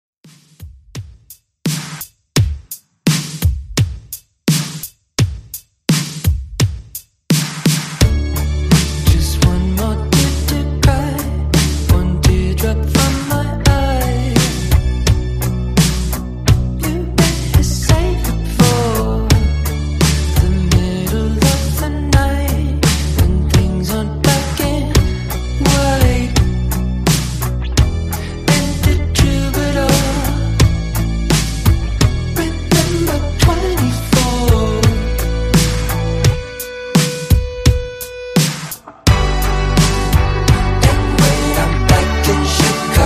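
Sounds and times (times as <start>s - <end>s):
drum beat: 0.2s - 43.0s.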